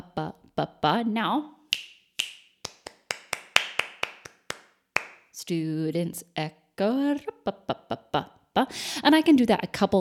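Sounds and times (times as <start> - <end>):
speech: 0.2 - 1.6, 5.5 - 10.0
finger snaps in a body percussion pattern: 1.7 - 3.4.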